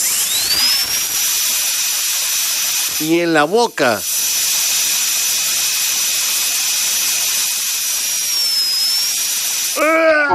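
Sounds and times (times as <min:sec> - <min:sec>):
dentist's drill whining: 0:00.0 - 0:10.3
speech: 0:03.0 - 0:04.1.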